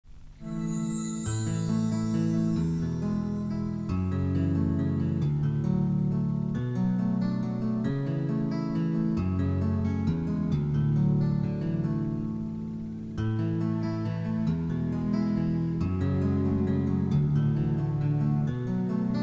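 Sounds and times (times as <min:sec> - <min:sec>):
instrumental music: 0:00.1 - 0:19.2.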